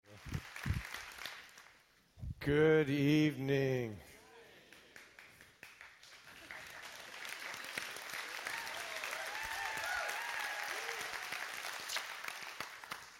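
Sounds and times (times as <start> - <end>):
audience applause: 0.1 - 1.8, 4.7 - 13.1
speech: 2.4 - 4.1.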